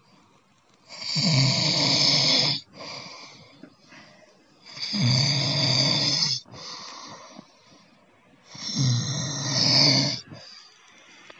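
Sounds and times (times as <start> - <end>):
person snoring: 0.9 - 3.5, 4.6 - 7.5, 8.5 - 10.7.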